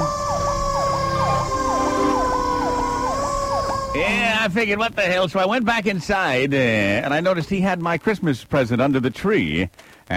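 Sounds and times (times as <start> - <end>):
rescue vehicle siren wailing: 0.0 - 4.9
speech: 4.4 - 10.1.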